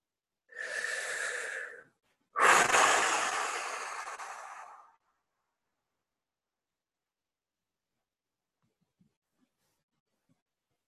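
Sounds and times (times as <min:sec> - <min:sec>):
deep slow breathing during a guided meditation: 0:00.5 - 0:05.0.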